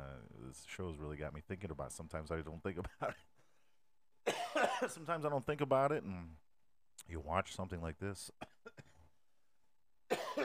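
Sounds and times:
speech: 0.4 - 3.3, 4.5 - 6.4, 7.0 - 8.5
person coughing: 4.2 - 5.0, 10.1 - 10.4.

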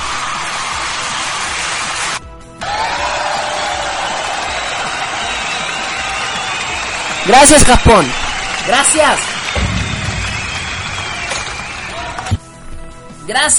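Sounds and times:
applause sound effect: 0.0 - 12.4
speech: 7.2 - 9.3, 13.3 - 13.5.

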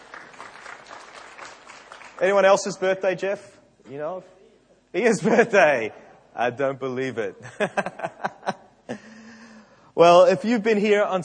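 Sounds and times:
audience clapping for a birthday: 0.0 - 2.8
speech: 2.2 - 8.3, 10.0 - 11.2
laughter: 7.4 - 9.3.

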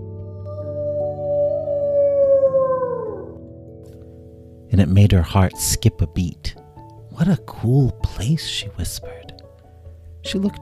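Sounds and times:
eerie dragon-like creature wail: 0.0 - 3.4
speech: 4.8 - 6.6, 7.2 - 9.2, 10.2 - 10.6.

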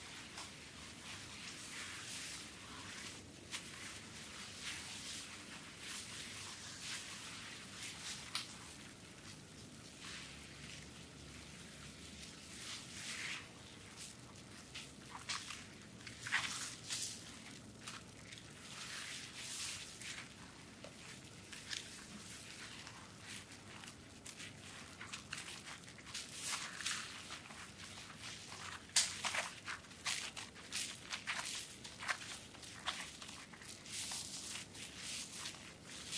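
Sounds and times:
soap massage squishing and rubbing: 0.0 - 36.1.

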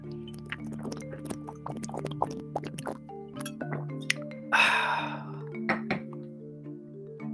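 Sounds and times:
person drinking water: 0.0 - 6.2
breathy rush of air: 4.5 - 5.5.

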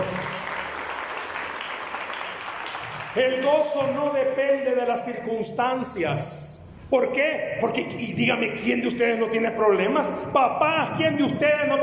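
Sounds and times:
audience applauding: 0.0 - 3.8
speech: 3.2 - 11.8.

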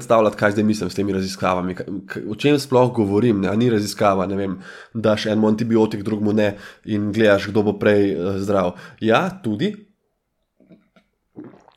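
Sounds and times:
speech: 0.0 - 9.9
person sipping coffee: 10.5 - 11.7.

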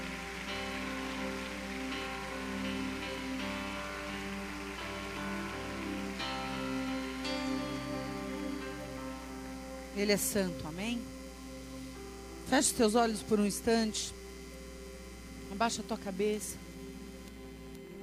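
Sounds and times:
audience applauding: 0.0 - 9.0
sustained keyboard chords: 0.0 - 18.0
speech: 10.0 - 11.2, 12.5 - 14.2, 15.5 - 16.6.

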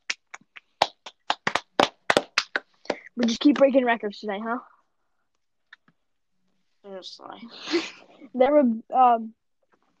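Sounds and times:
hands clapping: 0.0 - 3.9
speech: 3.2 - 4.7, 7.0 - 9.4.

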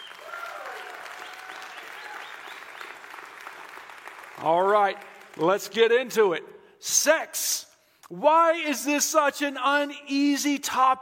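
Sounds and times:
audience round of applause: 0.0 - 5.5
speech: 4.4 - 11.0.

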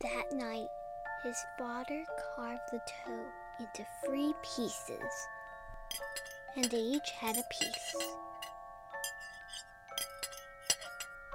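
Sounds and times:
speech: 0.0 - 8.5
dishes clinking: 5.9 - 11.2.

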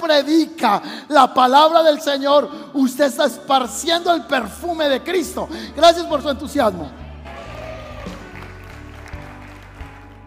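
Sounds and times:
speech: 0.1 - 7.0
small audience applauding: 7.3 - 10.2.

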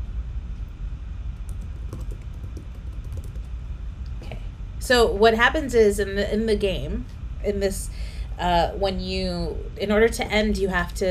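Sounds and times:
typing on a computer keyboard writing an email: 1.4 - 3.5
speech: 4.8 - 11.0.

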